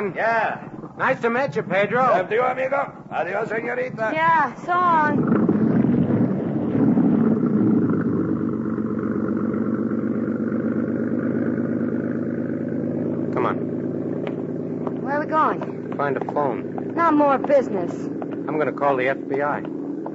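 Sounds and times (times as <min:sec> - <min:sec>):
speech: 0:00.0 - 0:05.4, 0:15.3 - 0:20.1
motorboat engine pulling away: 0:00.0 - 0:20.1.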